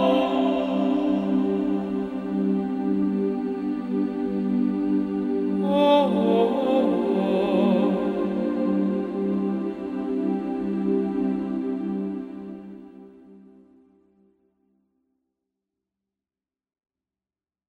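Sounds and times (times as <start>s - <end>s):
tenor singing: 0.0s - 12.3s.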